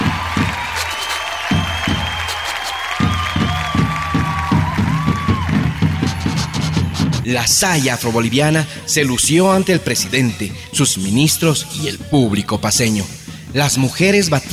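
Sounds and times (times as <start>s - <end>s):
audience applause: 0.0s - 7.3s
speech: 7.3s - 14.5s.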